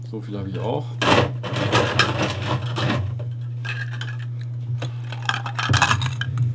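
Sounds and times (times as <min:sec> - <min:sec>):
speech: 0:00.1 - 0:03.0
ice cubes dropped into glass: 0:03.6 - 0:04.4, 0:05.0 - 0:06.4.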